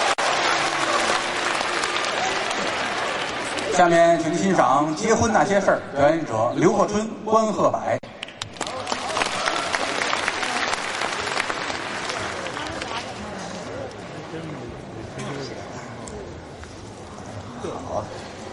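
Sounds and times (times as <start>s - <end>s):
audience applause: 0.0s - 3.8s, 8.4s - 13.2s
speech: 3.8s - 8.0s.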